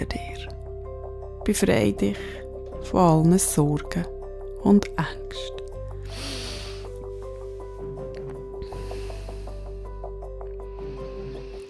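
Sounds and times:
speech: 0:01.5 - 0:05.6
deep breathing in and out: 0:06.0 - 0:07.8, 0:08.6 - 0:11.6.

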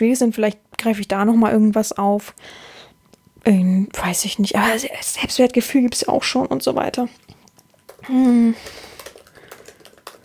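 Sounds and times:
speech: 0:00.0 - 0:02.8, 0:03.4 - 0:07.4, 0:08.0 - 0:08.9
typing on a computer keyboard: 0:07.5 - 0:10.2.

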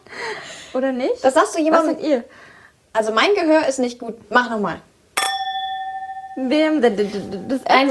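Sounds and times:
speech: 0:00.8 - 0:04.9, 0:06.4 - 0:07.8
drinking glass struck, ringing: 0:05.2 - 0:07.8.

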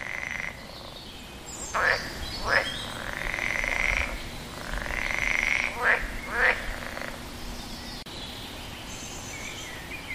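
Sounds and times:
frogs croaking by a pond: 0:00.0 - 0:07.4.

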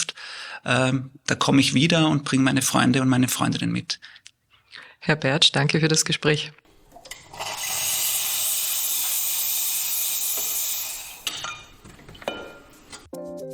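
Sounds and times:
speech: 0:00.6 - 0:04.2, 0:05.0 - 0:06.6
coffee machine hissing steam: 0:06.7 - 0:11.9.

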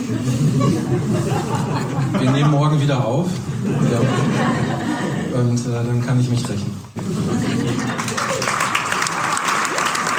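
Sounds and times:
laughter: 0:00.0 - 0:05.8, 0:07.0 - 0:09.8
speech: 0:00.1 - 0:08.0
applause: 0:07.7 - 0:10.1.

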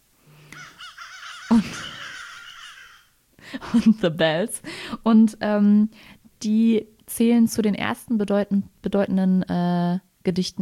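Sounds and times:
crow cawing: 0:00.6 - 0:03.2
speech: 0:01.5 - 0:01.9, 0:03.5 - 0:10.6.

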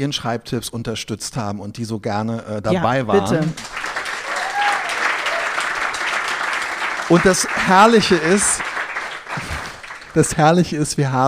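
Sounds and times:
speech: 0:00.0 - 0:04.0, 0:07.1 - 0:08.7, 0:10.1 - 0:11.2
audience applause: 0:03.2 - 0:10.8.

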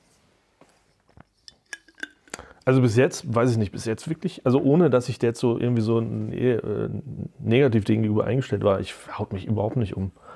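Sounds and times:
lid clinking onto a container: 0:01.5 - 0:02.2
speech: 0:02.6 - 0:10.3.

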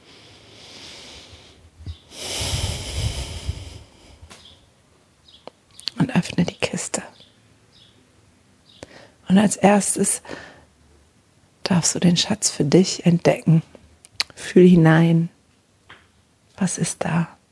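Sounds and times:
deep breaths in a guided breathing exercise: 0:00.0 - 0:04.4
speech: 0:09.4 - 0:10.5, 0:11.8 - 0:13.8, 0:14.4 - 0:15.3, 0:16.6 - 0:17.3.

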